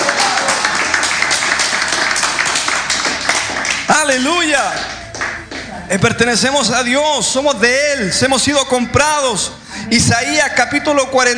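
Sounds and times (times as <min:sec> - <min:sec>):
church audience applause: 0:00.0 - 0:05.7
speech: 0:05.9 - 0:11.3.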